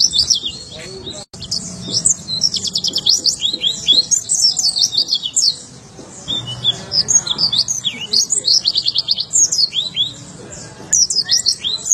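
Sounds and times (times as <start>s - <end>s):
white-eye song: 0.0s - 11.9s.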